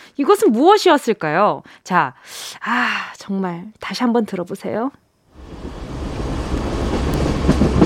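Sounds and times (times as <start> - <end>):
speech: 0.2 - 5.6
train clattering along the rails: 5.6 - 7.8.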